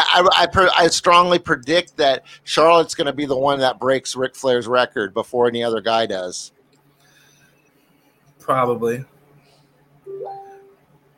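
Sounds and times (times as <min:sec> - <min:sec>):
speech: 0:00.2 - 0:06.6, 0:08.5 - 0:09.1
Messenger app notification sound: 0:10.1 - 0:10.7.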